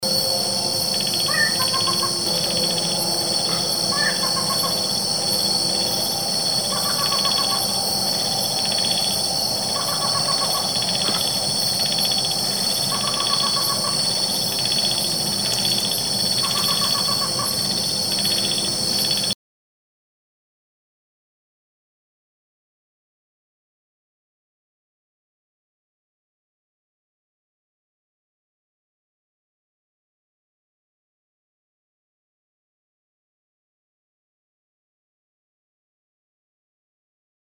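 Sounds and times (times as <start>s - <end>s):
crake calling: 0.1s - 19.3s.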